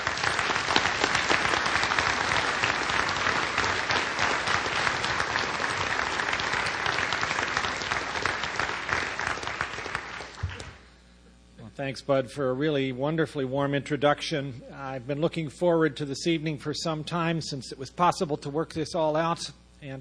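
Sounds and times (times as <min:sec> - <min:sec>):
audience applause welcoming a speaker at an evening talk: 0:00.0 - 0:10.8
speech: 0:11.8 - 0:19.9.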